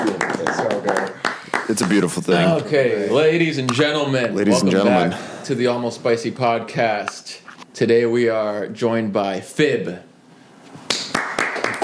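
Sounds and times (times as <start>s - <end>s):
audience clapping: 0.0s - 2.3s, 10.9s - 11.8s
speech: 1.7s - 10.1s.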